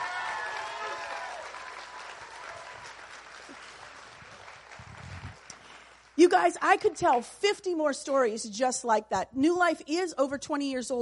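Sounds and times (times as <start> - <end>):
audience applause: 0.0 - 6.2
speech: 6.2 - 11.0.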